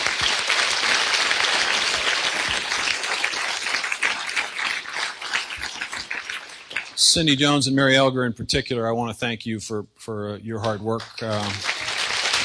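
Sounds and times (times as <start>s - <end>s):
audience applause: 0.0s - 7.1s, 11.0s - 12.4s
speech: 7.1s - 11.7s.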